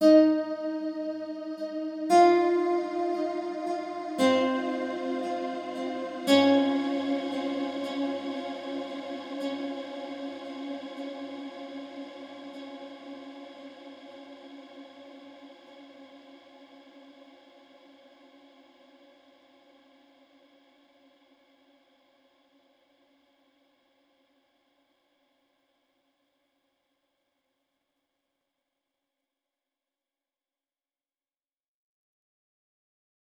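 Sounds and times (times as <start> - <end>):
overlay tone: 0.0 - 14.1.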